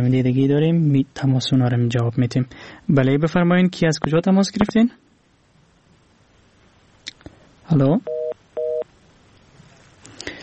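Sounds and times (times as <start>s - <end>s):
speech: 0.0s - 5.0s, 7.7s - 8.2s
telephone busy tone after a caller's line drops: 8.1s - 8.9s.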